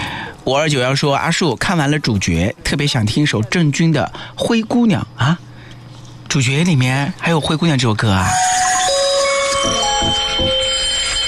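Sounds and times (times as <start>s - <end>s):
speech: 0.5s - 5.5s, 6.3s - 8.7s
alarm clock ringing: 8.2s - 11.2s.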